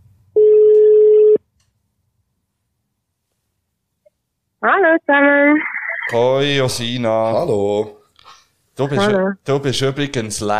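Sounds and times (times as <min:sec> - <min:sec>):
ringback tone from an outgoing phone call: 0:00.4 - 0:01.4
speech: 0:04.7 - 0:08.0, 0:08.8 - 0:10.5.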